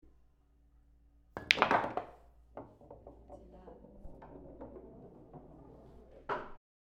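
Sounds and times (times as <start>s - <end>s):
pool ball sinking into pocket: 1.4s - 6.6s.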